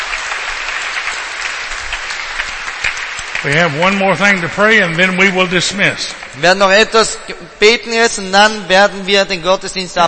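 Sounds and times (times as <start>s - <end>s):
congregation applauding during a church service: 0.0s - 7.4s
speech: 3.4s - 10.0s.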